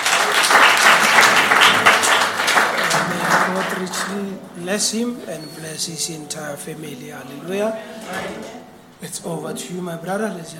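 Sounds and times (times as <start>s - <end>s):
audience applause: 0.0s - 4.4s
speech: 4.1s - 10.5s.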